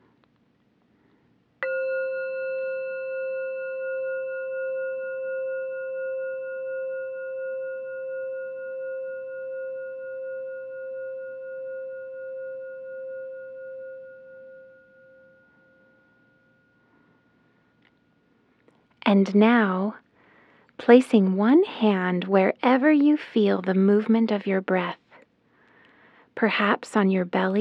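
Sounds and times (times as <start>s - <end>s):
meditation bell ringing: 1.6s - 17.6s
speech: 19.1s - 20.0s, 20.8s - 25.0s, 26.4s - 27.5s.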